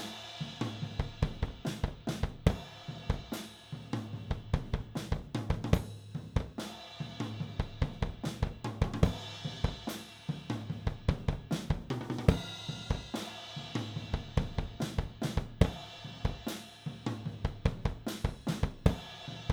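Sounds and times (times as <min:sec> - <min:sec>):
drums recorded with an AKG414 microphone: 0:00.0 - 0:19.5.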